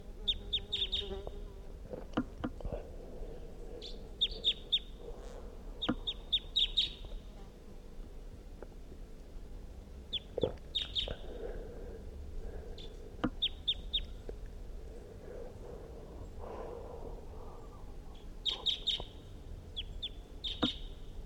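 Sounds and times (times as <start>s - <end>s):
faint hum: 0.0s - 21.2s
wild bird chirping from a tree: 0.3s - 1.2s, 3.7s - 7.2s, 10.1s - 11.5s, 12.7s - 14.2s, 15.5s - 21.1s.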